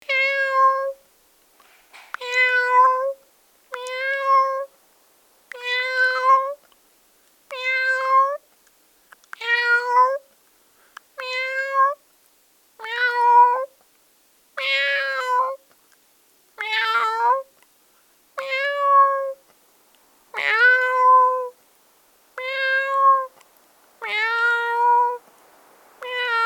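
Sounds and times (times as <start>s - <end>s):
cat sounds: 0.1s - 1.0s, 1.8s - 4.8s, 5.5s - 6.7s, 7.5s - 8.4s, 9.3s - 10.3s, 11.2s - 12.0s, 12.8s - 13.8s, 14.6s - 15.6s, 16.6s - 17.6s, 18.4s - 19.6s, 20.3s - 21.6s, 22.4s - 25.3s, 26.0s - 26.4s.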